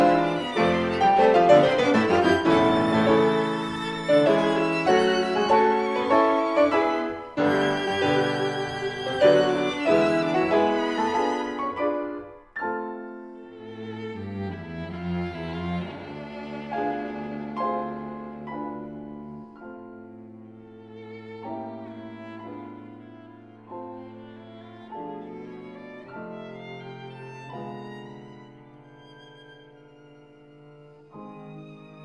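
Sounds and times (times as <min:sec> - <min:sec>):
musical trio: 0:00.0 - 0:20.8.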